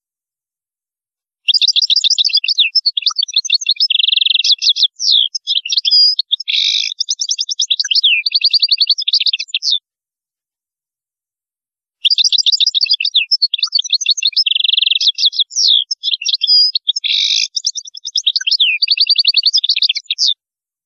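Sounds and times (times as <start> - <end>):
European goldfinch singing: 1.5 - 9.8, 12.0 - 20.4.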